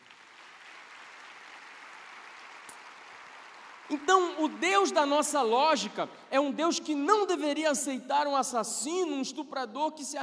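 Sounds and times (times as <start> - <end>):
audience applause: 0.0 - 5.5
speech: 3.9 - 10.2.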